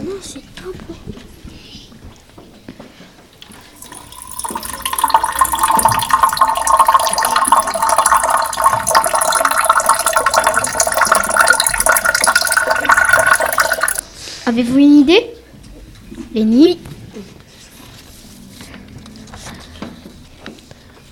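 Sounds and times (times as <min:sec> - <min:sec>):
speech: 0:00.2 - 0:01.3, 0:14.5 - 0:15.3, 0:16.4 - 0:16.8
running water: 0:03.4 - 0:14.0.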